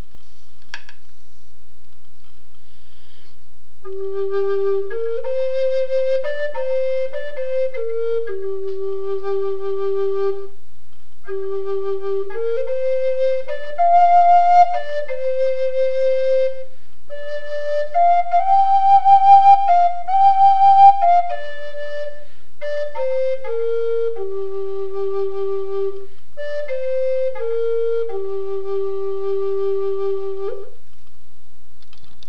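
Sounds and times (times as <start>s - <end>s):
flute: 3.8s - 31.1s.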